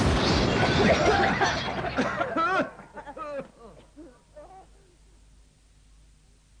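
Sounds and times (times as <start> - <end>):
skyrocket firework exploding: 0.0 - 2.4
laughter: 0.6 - 4.6.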